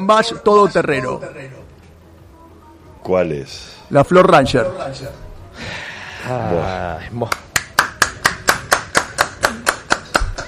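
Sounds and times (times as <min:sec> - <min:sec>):
speech: 0:00.0 - 0:01.6, 0:03.0 - 0:07.4
person clapping: 0:07.2 - 0:10.4.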